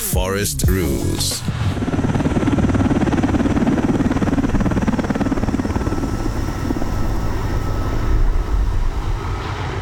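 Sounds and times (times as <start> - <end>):
speech: 0.2 - 2.0
aircraft engine droning: 0.9 - 9.8.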